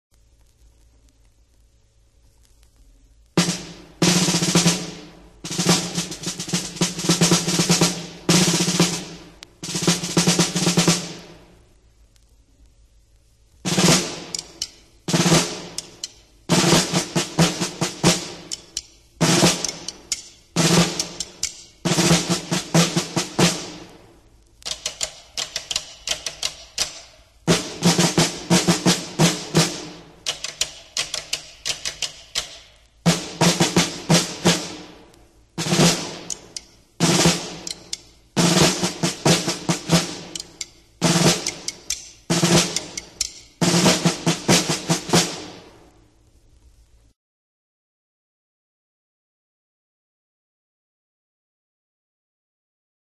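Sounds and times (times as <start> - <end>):
snare drum played in different ways: 3.4 - 11.6, 13.6 - 45.9.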